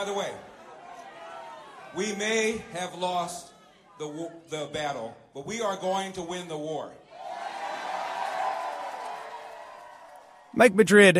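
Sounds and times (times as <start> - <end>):
speech: 0.0 - 0.5, 1.9 - 7.0, 10.6 - 11.1
crowd booing: 0.0 - 4.0, 7.1 - 10.6.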